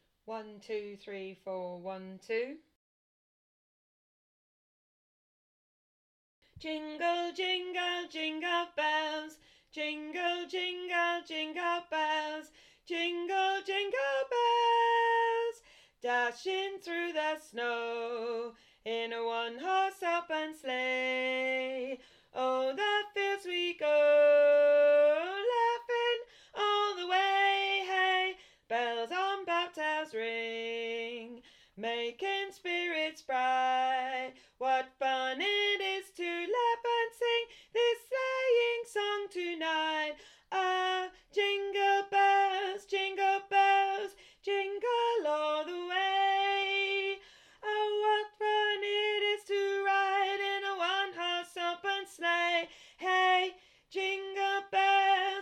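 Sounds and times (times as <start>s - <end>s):
soprano singing: 6.6s - 55.4s.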